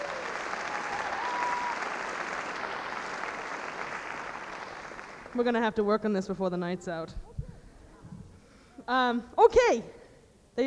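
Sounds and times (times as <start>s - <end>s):
audience applause: 0.0s - 5.4s
speech: 5.3s - 7.4s, 8.9s - 10.0s.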